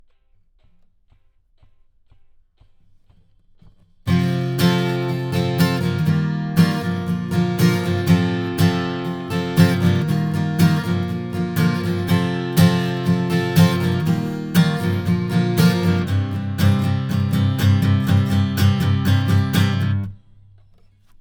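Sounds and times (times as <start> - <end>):
acoustic guitar: 4.1 - 21.1.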